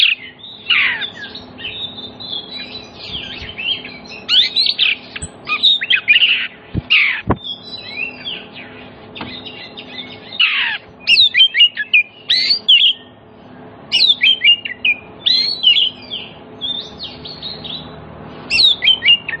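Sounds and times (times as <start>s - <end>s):
Oriental magpie-robin whistled song: 0.0s - 13.2s, 13.9s - 19.3s.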